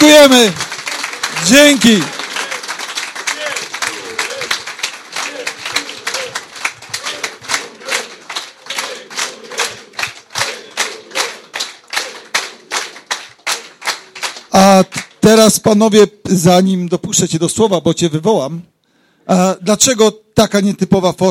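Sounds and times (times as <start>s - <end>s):
speech: 0.0s - 0.6s, 1.4s - 2.2s, 15.4s - 21.2s
audience clapping: 0.0s - 15.5s.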